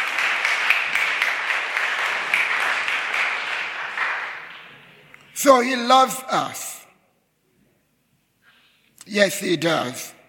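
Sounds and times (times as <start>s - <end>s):
audience applause: 0.0s - 5.0s
speech: 5.4s - 6.8s, 9.1s - 10.2s.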